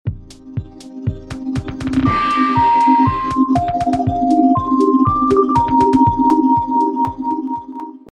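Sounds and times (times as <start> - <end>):
carillon bells: 2.1 - 7.8.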